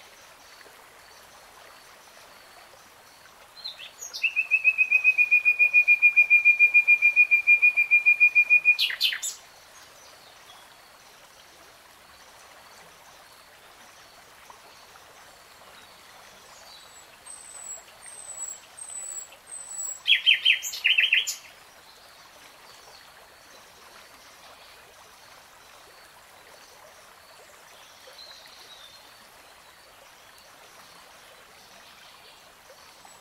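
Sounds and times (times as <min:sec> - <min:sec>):
nightingale singing: 0:03.6 - 0:09.4, 0:17.3 - 0:21.5.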